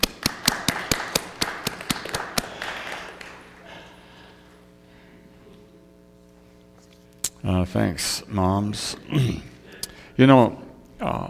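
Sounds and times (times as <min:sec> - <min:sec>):
sharp evenly spaced claps: 0:00.0 - 0:03.6
audience applause: 0:00.0 - 0:03.9
speech: 0:07.6 - 0:09.5, 0:10.2 - 0:11.2.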